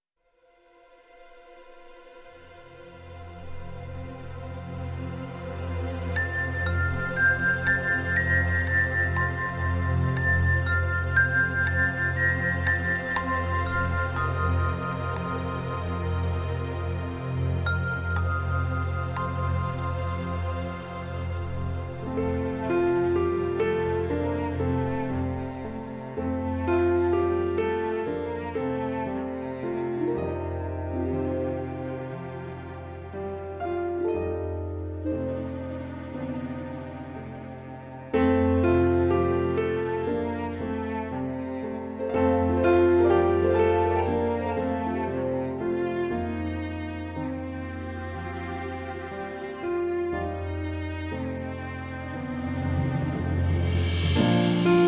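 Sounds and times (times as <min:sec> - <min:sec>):
instrumental music: 0:00.9 - 0:54.8.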